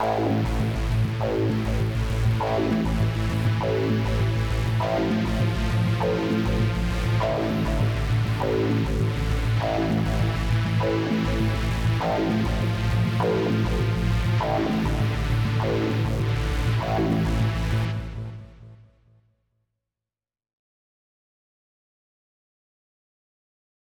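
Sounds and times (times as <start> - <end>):
synthesizer: 0.0 - 19.0.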